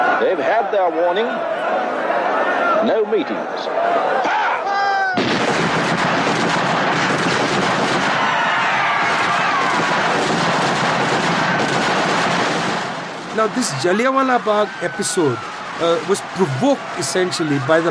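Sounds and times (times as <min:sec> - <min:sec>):
speech: 0:00.2 - 0:04.3, 0:13.4 - 0:17.9
gunfire as British troops open fire at Jallianwala Bagh: 0:05.2 - 0:17.9.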